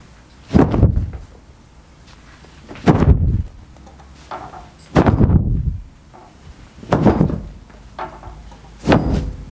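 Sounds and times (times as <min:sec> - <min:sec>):
towel flapping: 0:00.4 - 0:01.3, 0:02.7 - 0:03.6, 0:04.9 - 0:05.8, 0:06.8 - 0:07.6.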